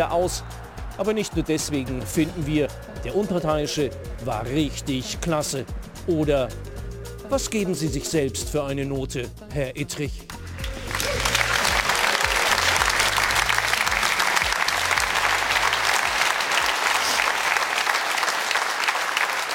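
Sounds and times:
speech: 0.0 - 6.7, 7.3 - 10.4
audience applause: 10.3 - 19.5.

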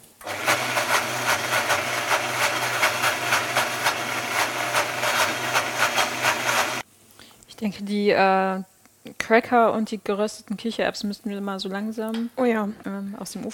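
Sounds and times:
Vitamix blender pureeing hummus ingredients: 0.0 - 6.8
speech: 7.6 - 13.5.

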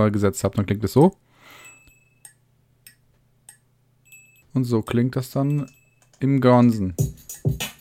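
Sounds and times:
speech: 0.0 - 1.3, 4.5 - 7.7
small bell: 1.5 - 2.3, 4.0 - 4.7, 5.3 - 6.2.

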